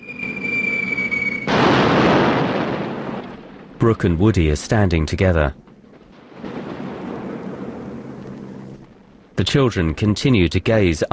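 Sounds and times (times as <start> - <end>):
falling bomb whistling during an air raid: 0.0 - 3.3
bomb explosion roaring blast: 0.2 - 4.2, 5.8 - 9.1
speech: 3.8 - 5.7, 9.4 - 11.1.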